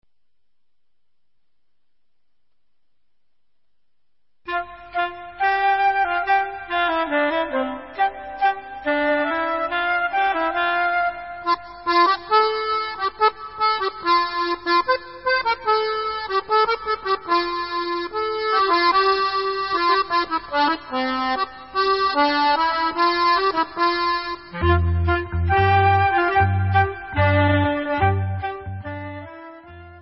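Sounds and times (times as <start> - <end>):
instrumental music: 4.5 - 29.9.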